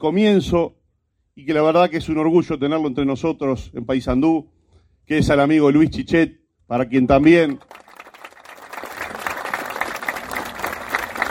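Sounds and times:
speech: 0.0 - 0.8, 1.4 - 7.8
audience applause at a gathering in Paysandú: 7.5 - 11.2.

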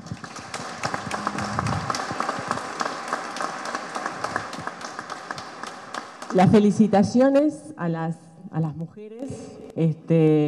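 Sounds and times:
crowd applauding: 0.0 - 6.7
low voice: 1.1 - 1.9
speech: 6.3 - 10.4.

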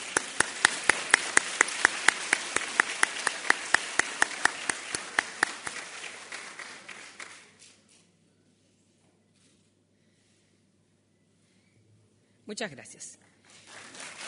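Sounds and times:
applause: 0.0 - 7.8, 13.4 - 14.2
speech: 12.5 - 13.5.

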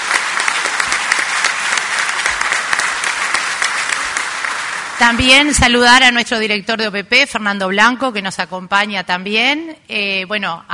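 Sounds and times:
audience applause: 0.0 - 5.5
speech: 5.0 - 10.7.

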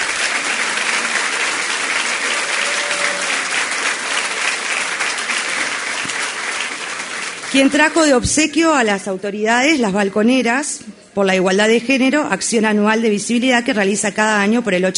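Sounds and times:
sustained audience applause: 0.0 - 8.2
speech: 7.6 - 14.9.

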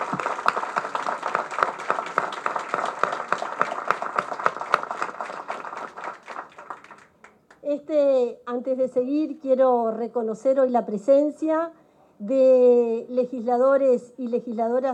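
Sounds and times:
audience applause: 0.0 - 7.4
speech: 8.5 - 14.9.

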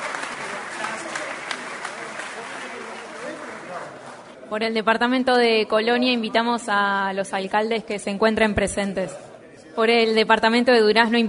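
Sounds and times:
audience applause: 0.0 - 4.4
speech: 4.5 - 11.2.

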